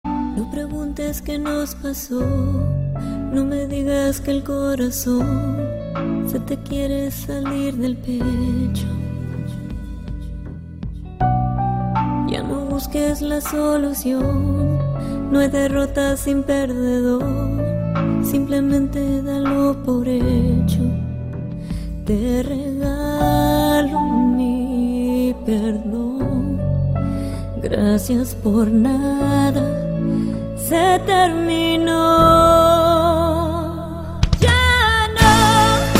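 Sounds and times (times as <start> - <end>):
sad music: 0.1 - 35.9.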